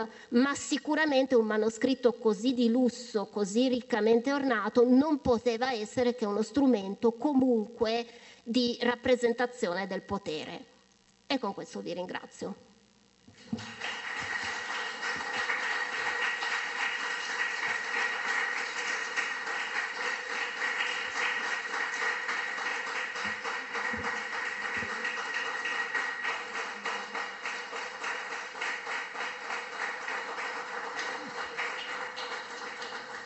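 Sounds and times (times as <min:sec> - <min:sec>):
speech: 0:00.0 - 0:10.7, 0:11.3 - 0:12.7, 0:13.5 - 0:13.9
audience applause after a lecture: 0:13.4 - 0:33.2.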